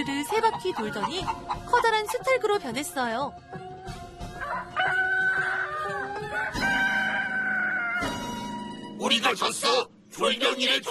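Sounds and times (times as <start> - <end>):
speech: 0.0 - 3.7, 9.0 - 10.8
rooster crowing: 4.4 - 8.2.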